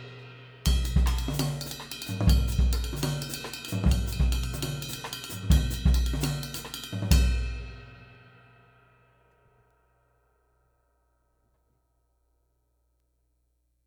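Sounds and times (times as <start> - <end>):
cymbal: 0.0 - 10.0.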